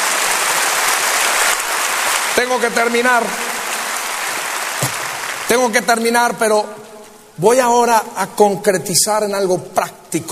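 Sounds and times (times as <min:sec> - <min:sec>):
audience applause: 0:00.0 - 0:06.0
speech: 0:02.4 - 0:03.4, 0:05.5 - 0:10.3.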